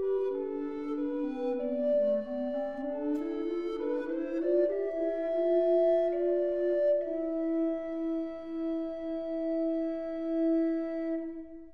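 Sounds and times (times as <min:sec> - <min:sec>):
tenor recorder: 0:00.0 - 0:11.7.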